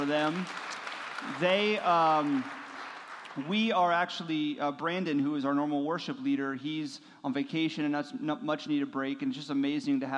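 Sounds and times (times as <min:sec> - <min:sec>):
speech: 0:00.0 - 0:02.6, 0:03.4 - 0:10.1
crowd applause for the band: 0:00.0 - 0:03.7.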